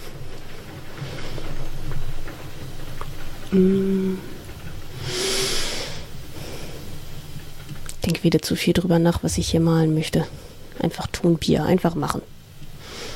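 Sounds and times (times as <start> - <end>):
heavy rain pouring outside: 0.0 - 13.1
speech: 3.5 - 4.3, 8.1 - 12.3.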